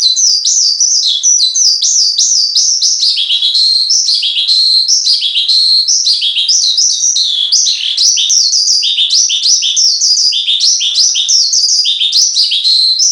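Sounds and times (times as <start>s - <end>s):
Horsfield's bushlark in continuous song: 0.0s - 13.1s.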